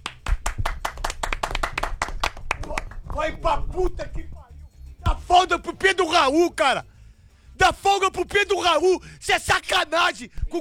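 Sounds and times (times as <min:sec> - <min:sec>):
round of applause: 0:00.0 - 0:03.3
speech: 0:03.2 - 0:04.4, 0:05.1 - 0:06.9, 0:07.6 - 0:10.5.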